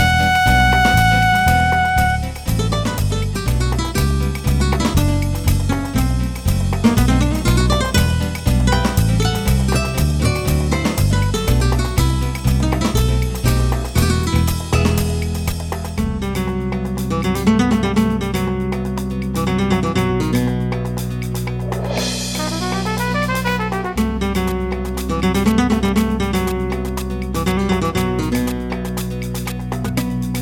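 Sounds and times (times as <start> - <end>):
trumpet: 0.0 - 2.5, 22.3 - 24.5
flamenco guitar: 0.0 - 30.4.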